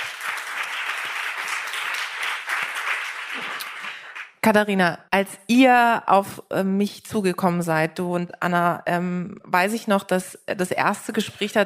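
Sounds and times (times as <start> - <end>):
audience applause: 0.0 - 4.4
speech: 4.4 - 11.6.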